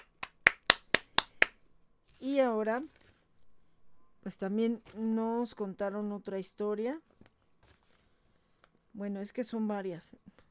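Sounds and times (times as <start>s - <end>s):
applause: 0.0s - 1.5s
speech: 2.2s - 3.0s, 4.2s - 7.1s, 9.0s - 10.4s.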